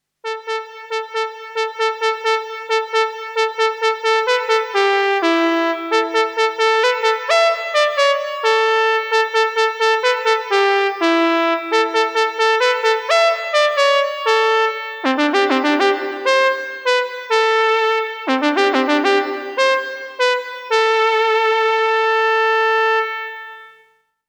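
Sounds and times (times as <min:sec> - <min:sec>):
ARP synthesizer trumpet: 0:00.2 - 0:24.0.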